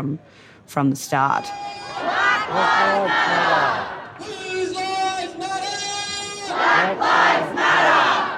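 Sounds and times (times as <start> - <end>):
speech: 0.0 - 4.8
protest crowd chanting while marching: 1.8 - 4.2, 5.6 - 8.3.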